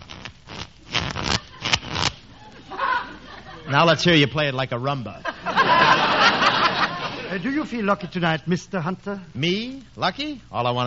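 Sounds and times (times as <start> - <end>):
playing cards being shuffled: 0.0 - 2.3
laughter: 2.4 - 8.2
speech: 3.7 - 5.3, 7.3 - 10.8.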